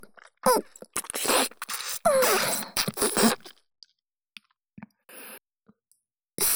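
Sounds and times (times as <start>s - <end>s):
ear licking: 0.2s - 5.0s
adult kissing: 1.0s - 3.6s.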